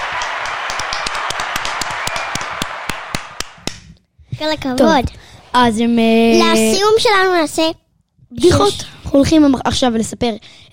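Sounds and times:
audience clapping: 0.0s - 3.9s
speech: 4.4s - 10.7s.

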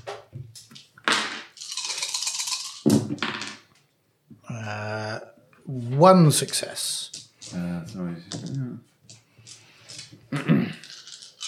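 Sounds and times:
two dice being rolled: 0.6s - 3.7s, 6.4s - 7.7s, 8.3s - 11.4s
speech: 5.7s - 8.1s.

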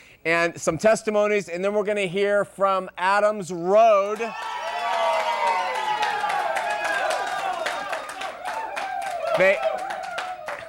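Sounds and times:
speech: 0.2s - 4.5s, 9.4s - 9.8s
rowdy audience cheering and clapping: 4.0s - 10.6s.

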